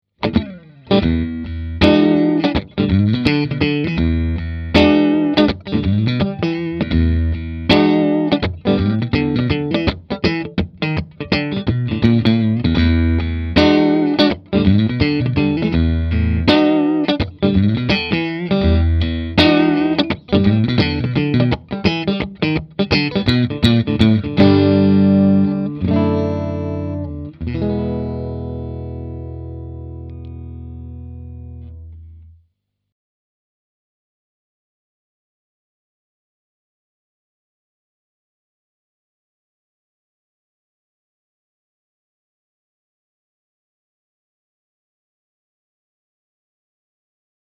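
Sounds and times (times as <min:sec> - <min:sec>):
clean electric guitar on neck and middle pickups: 0:00.2 - 0:32.4.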